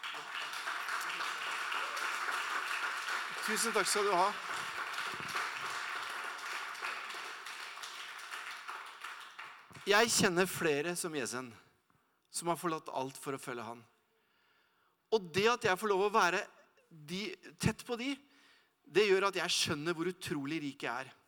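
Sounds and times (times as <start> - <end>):
audience applause: 0.0 - 9.9
speech: 3.5 - 4.5, 9.9 - 11.6, 12.4 - 13.9, 15.1 - 18.3, 18.9 - 21.2.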